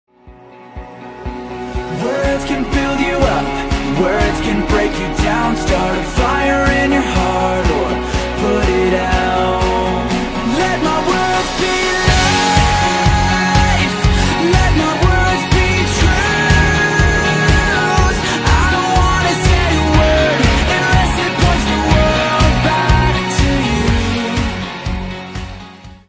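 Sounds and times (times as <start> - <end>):
song: 0.2 - 26.0.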